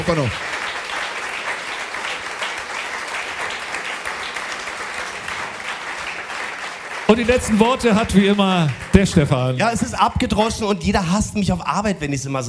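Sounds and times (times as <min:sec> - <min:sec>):
speech: 0:00.0 - 0:00.5, 0:07.2 - 0:12.4
audience applause: 0:00.0 - 0:09.9.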